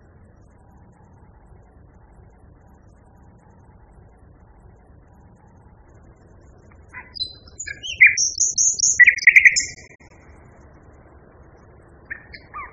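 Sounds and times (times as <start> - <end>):
Common nightingale singing: 5.3 - 10.2, 12.0 - 12.7.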